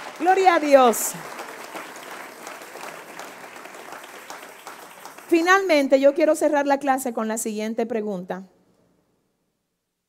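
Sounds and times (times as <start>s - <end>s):
loud audience applause: 0.0s - 5.7s
speech: 0.2s - 1.4s, 5.3s - 8.5s.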